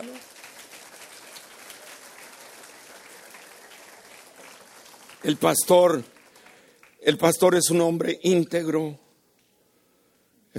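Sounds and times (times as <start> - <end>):
audience applause: 0.0 - 7.2
speech: 5.2 - 6.1, 7.1 - 9.0.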